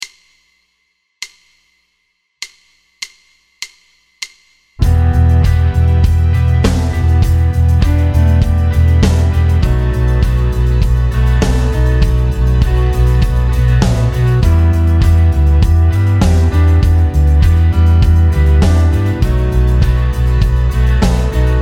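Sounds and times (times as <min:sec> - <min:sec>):
guitar chord progression at 100 bpm: 0:04.8 - 0:21.5.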